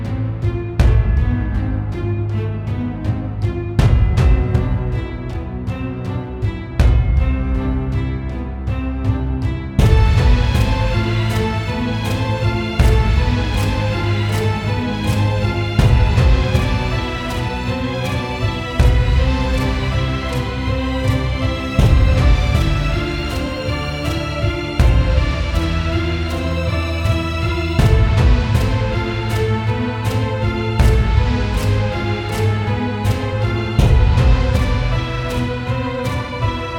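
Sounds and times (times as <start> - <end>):
cello: 0.0 - 36.7
double bass: 0.0 - 36.7
strings: 0.0 - 36.7
gong: 9.8 - 36.7
choir: 9.9 - 36.7.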